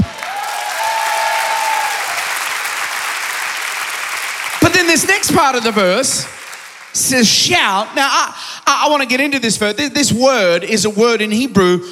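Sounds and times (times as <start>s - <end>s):
audience clapping hands: 0.0s - 7.3s
speech: 4.9s - 11.9s.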